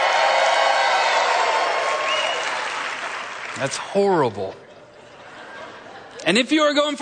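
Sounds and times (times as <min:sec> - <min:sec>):
crowd cheering and clapping: 0:00.0 - 0:04.0
speech: 0:03.6 - 0:04.6, 0:06.2 - 0:07.0
laughter: 0:04.6 - 0:06.6.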